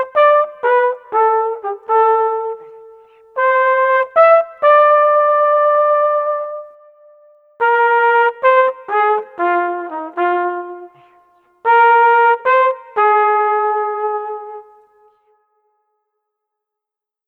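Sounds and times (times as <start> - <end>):
street flugelhorn sweet melody: 0.0 - 15.4.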